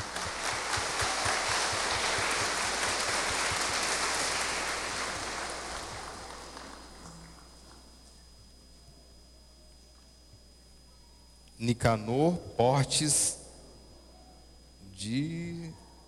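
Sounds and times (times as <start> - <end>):
applause: 0.0 - 7.8
speech: 11.6 - 13.4, 15.0 - 15.8.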